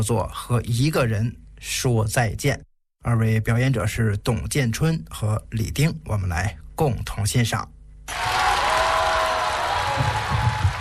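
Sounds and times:
speech: 0:00.0 - 0:08.3
audience applause: 0:08.1 - 0:10.7.

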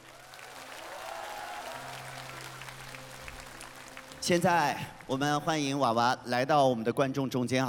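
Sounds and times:
audience applause: 0:00.0 - 0:05.3
speech: 0:04.2 - 0:07.6.

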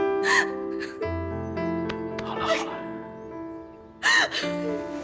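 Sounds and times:
woman sobbing and wailing: 0:00.2 - 0:01.2, 0:02.3 - 0:02.9, 0:04.0 - 0:04.9.

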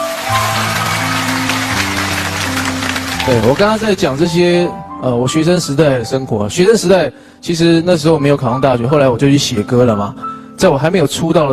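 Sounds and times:
applause: 0:00.0 - 0:04.5
speech: 0:03.3 - 0:11.5.

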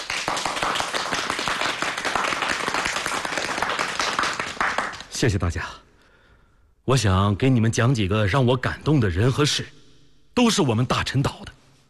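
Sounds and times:
audience applause: 0:00.0 - 0:05.1
speech: 0:05.2 - 0:05.9, 0:06.9 - 0:09.8, 0:10.4 - 0:11.6.

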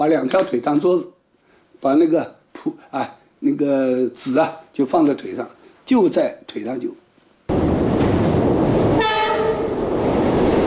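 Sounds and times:
speech: 0:00.0 - 0:01.2, 0:01.8 - 0:07.0
train rumbling on rails: 0:07.5 - 0:10.6
train horn blast: 0:09.0 - 0:09.8.

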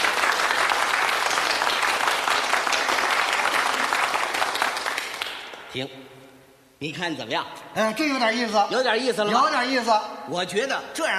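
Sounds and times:
prolonged applause: 0:00.0 - 0:05.6
speech: 0:05.8 - 0:06.0, 0:06.8 - 0:11.1.

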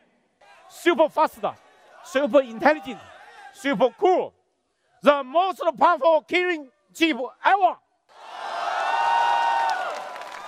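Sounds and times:
speech: 0:00.8 - 0:04.4, 0:05.0 - 0:07.8
audience applause and cheering at a smartphone launch event: 0:08.1 - 0:10.4.

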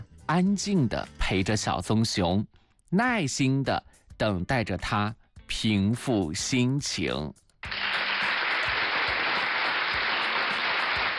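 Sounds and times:
speech: 0:00.3 - 0:07.4
applause: 0:07.6 - 0:11.1.

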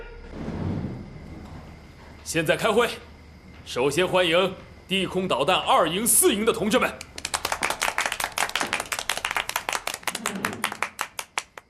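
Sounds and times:
speech: 0:02.3 - 0:03.1, 0:03.7 - 0:07.1
meeting audience applause: 0:07.0 - 0:11.6.

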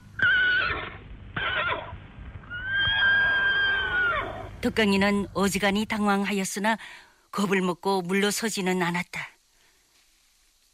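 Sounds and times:
horse neighing: 0:00.2 - 0:04.5
speech: 0:04.6 - 0:09.3.

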